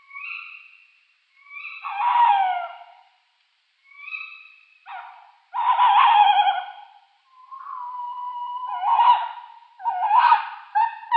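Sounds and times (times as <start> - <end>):
tawny owl pair quavering hoots in display: 1.4 - 3.1, 3.8 - 11.1.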